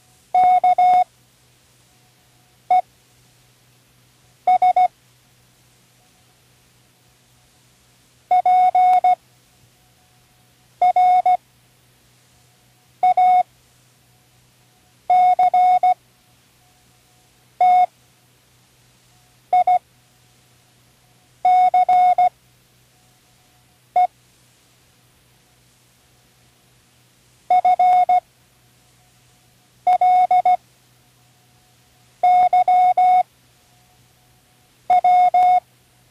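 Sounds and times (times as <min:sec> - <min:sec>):
Morse code spelling words: 0:00.4 - 0:01.0, 0:04.5 - 0:04.9, 0:08.3 - 0:09.2, 0:10.8 - 0:11.4, 0:13.0 - 0:13.4, 0:15.1 - 0:16.0, 0:17.6 - 0:17.9, 0:19.5 - 0:19.8, 0:21.4 - 0:22.3, 0:27.5 - 0:28.2, 0:29.9 - 0:30.6, 0:32.2 - 0:33.2, 0:34.9 - 0:35.6.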